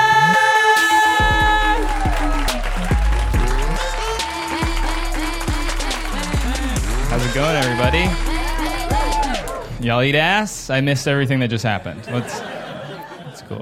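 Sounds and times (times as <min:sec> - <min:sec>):
audience applause: 0:01.0 - 0:09.8
laughter: 0:01.4 - 0:09.6, 0:11.4 - 0:13.6
speech: 0:07.8 - 0:08.3, 0:09.8 - 0:12.5, 0:13.5 - 0:13.6.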